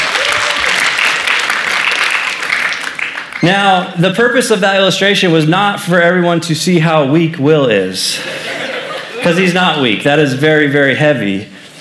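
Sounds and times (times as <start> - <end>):
audience applause: 0.0 - 3.4
speech: 3.4 - 8.5, 9.2 - 11.5
laughter: 8.1 - 9.8.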